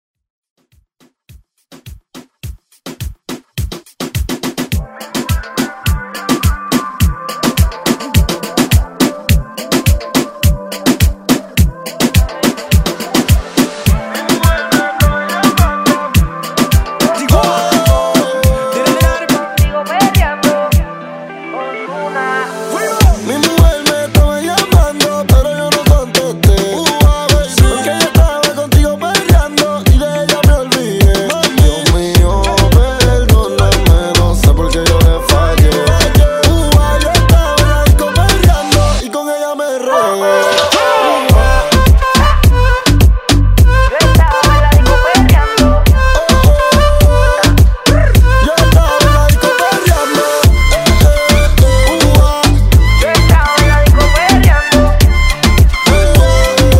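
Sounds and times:
reggaeton music: 0:01.0 - 0:56.7.

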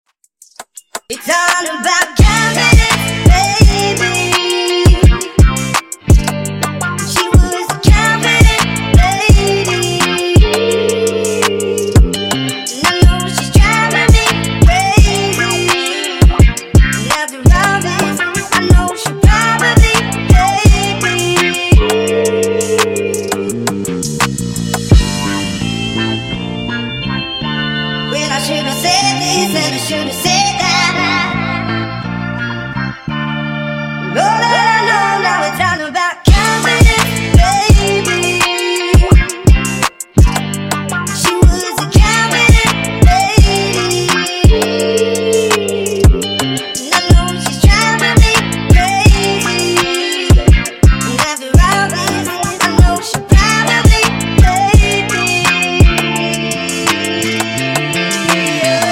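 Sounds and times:
funk music at 84 bpm: 0:00.4 - 0:58.8.

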